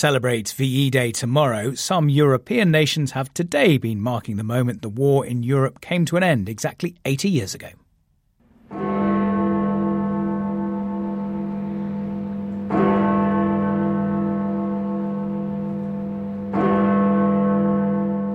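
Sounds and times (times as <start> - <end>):
speech: 0.0 - 7.8
church bells ringing at Westminster Abbey: 8.4 - 18.3.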